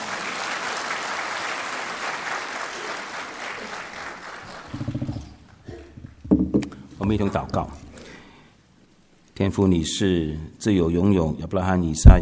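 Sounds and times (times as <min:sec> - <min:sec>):
audience applauding: 0:00.0 - 0:05.6
speech: 0:07.1 - 0:07.8, 0:09.4 - 0:12.2.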